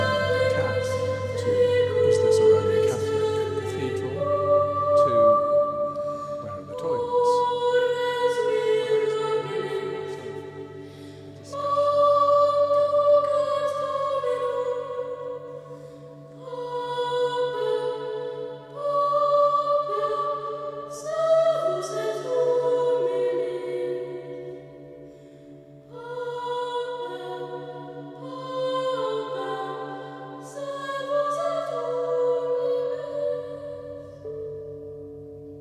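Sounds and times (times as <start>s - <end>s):
steady low drone: 0.0s - 16.2s
sustained musical tones in Wells Cathedral: 0.0s - 35.5s.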